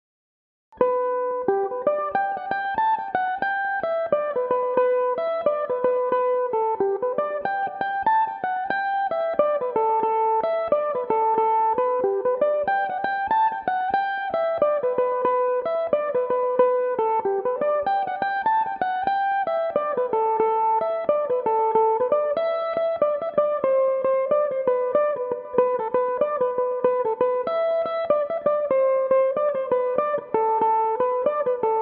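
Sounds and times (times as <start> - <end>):
Irish mandolin in G major: 0.8 - 31.8.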